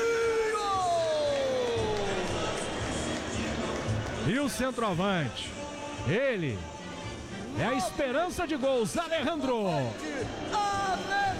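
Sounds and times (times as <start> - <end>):
stadium crowd applauding: 0.0 - 4.9
speech: 4.2 - 6.7, 7.6 - 11.2.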